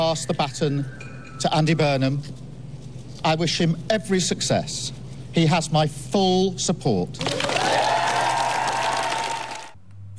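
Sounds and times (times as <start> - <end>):
speech: 0.1 - 2.4, 3.2 - 7.8
people cheering outside Downing Street: 7.2 - 9.8
staff and ministers clapping outside Downing Street: 7.2 - 9.8.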